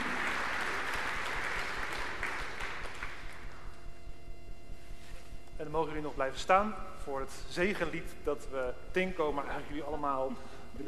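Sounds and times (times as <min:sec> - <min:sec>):
audience applause: 0:00.0 - 0:03.7
speech: 0:05.7 - 0:10.8.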